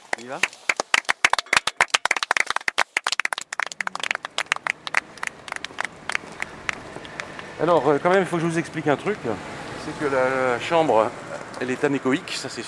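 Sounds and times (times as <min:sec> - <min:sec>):
small group clapping hands in anechoic chamber: 0:00.0 - 0:07.6
speech: 0:00.2 - 0:00.7, 0:07.6 - 0:12.6.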